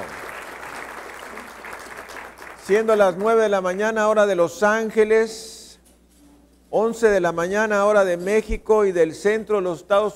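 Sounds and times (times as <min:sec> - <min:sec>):
audience applause: 0:00.0 - 0:03.4
speech: 0:02.7 - 0:05.5, 0:06.7 - 0:10.1.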